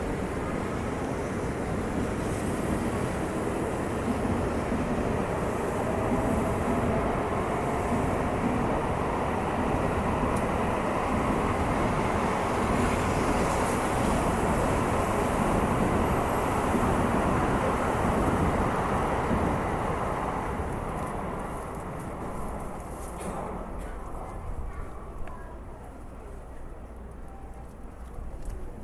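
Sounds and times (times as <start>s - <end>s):
train rumbling through a station in Japan: 0.0s - 28.8s
faint voices in a train station in Japan: 23.5s - 28.8s.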